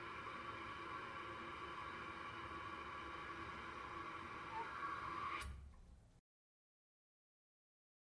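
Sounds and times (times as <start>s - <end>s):
public toilet flushing: 0.0s - 5.6s.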